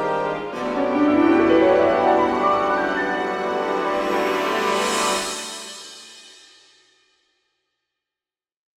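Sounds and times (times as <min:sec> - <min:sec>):
trailer music: 0:00.1 - 0:06.5.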